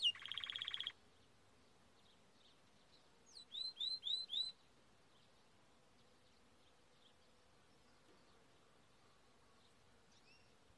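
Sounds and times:
Timbrado canary whistled song: 0.0 - 0.9, 3.4 - 4.6.

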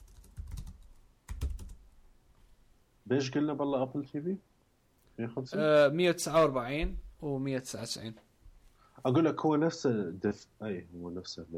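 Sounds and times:
typing on a computer keyboard: 0.0 - 1.8
speech: 3.1 - 4.5, 5.2 - 8.3, 9.0 - 11.5.

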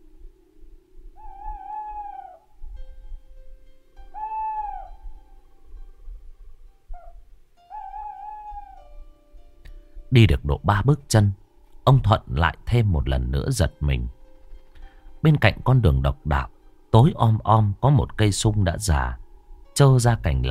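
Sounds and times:
owl hooting at night: 1.1 - 2.8, 4.0 - 6.3, 6.9 - 8.9
speech: 10.1 - 14.2, 15.2 - 19.2, 19.8 - 20.4.

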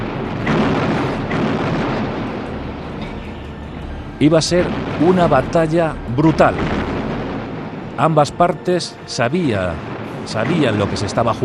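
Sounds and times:
cannon fire of Napoleon's artillery at the Battle of Waterloo: 0.0 - 3.4, 4.5 - 8.5, 9.7 - 11.4
speech: 4.2 - 6.8, 8.0 - 11.4.

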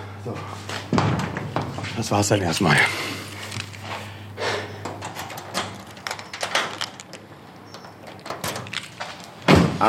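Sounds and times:
speech: 0.2 - 0.8, 2.0 - 3.2
door being closed: 2.4 - 9.8.

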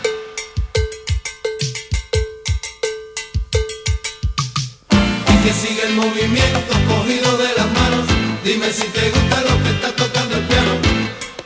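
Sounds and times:
salsa cowbell campana clanking: 0.0 - 5.2
sharp percussion hits: 0.0 - 11.4
deep drum thumps: 0.6 - 2.8, 3.4 - 5.5
speech: 5.5 - 7.7, 8.4 - 10.8.

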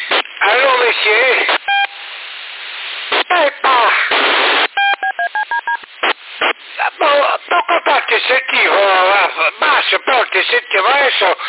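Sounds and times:
harsh bursts of radio static hiss: 0.0 - 11.4
short electronic beeps over a radio link: 4.8 - 5.8.

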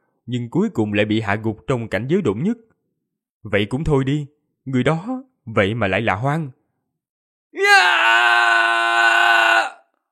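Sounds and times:
speech: 0.3 - 2.7, 3.4 - 6.6, 7.5 - 8.3
man screaming in anguish: 7.6 - 9.9.

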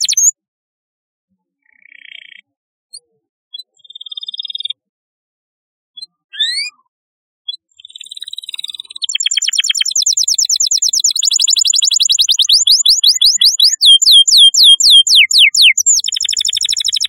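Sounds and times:
canary singing: 0.0 - 0.3, 6.0 - 6.8, 7.5 - 17.0.

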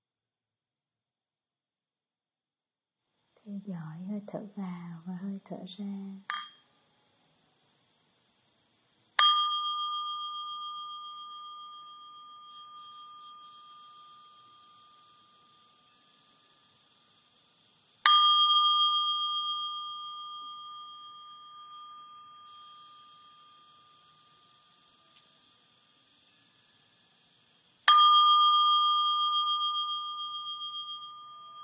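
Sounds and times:
speech: 3.5 - 6.4
meditation bell struck to mark the end of a session: 6.3 - 7.1, 9.2 - 17.4, 18.0 - 25.6, 27.8 - 31.6.

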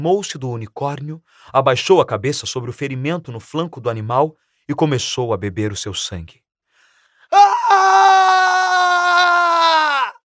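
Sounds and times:
speech: 0.0 - 6.4
terrified scream: 7.3 - 10.2.

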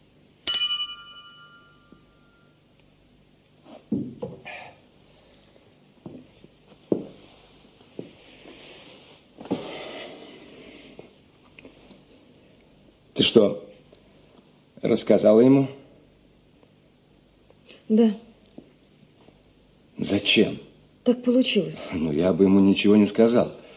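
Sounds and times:
wine glasses clinking: 0.4 - 2.6
speech: 13.2 - 13.7, 14.9 - 15.8, 18.0 - 18.2, 20.4 - 23.6.

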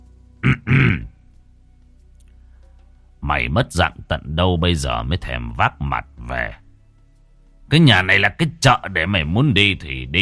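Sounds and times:
deep throaty cough: 0.4 - 1.2
speech: 3.3 - 6.6, 7.7 - 10.2.

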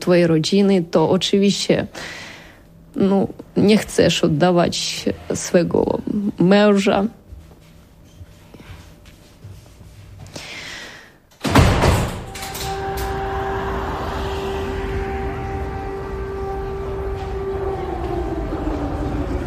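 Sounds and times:
speech: 0.0 - 2.2, 3.0 - 7.2
air raid alarm siren wailing: 11.5 - 19.4.

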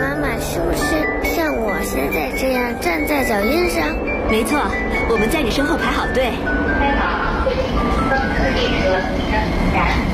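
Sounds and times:
subway train pulling into the platform with steady rumble: 0.0 - 10.1
speech: 2.7 - 10.1.

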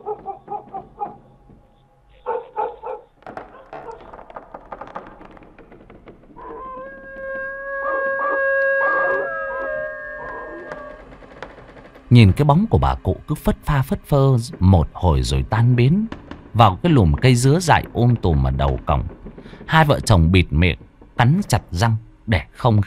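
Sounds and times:
neighbour's dog howling and barking: 0.0 - 1.2, 2.2 - 4.1, 6.4 - 11.0
speech: 12.2 - 22.8.

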